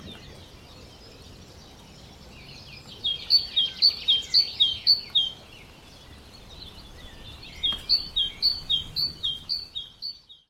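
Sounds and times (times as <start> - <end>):
great tit calling: 3.0 - 5.4, 6.7 - 10.3.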